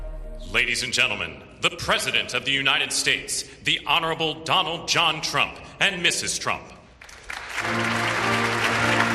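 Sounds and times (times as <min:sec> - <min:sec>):
speech: 0:00.6 - 0:06.8, 0:07.6 - 0:08.0
applause under the Capitol dome in Washington at a presidential inauguration: 0:07.0 - 0:09.1.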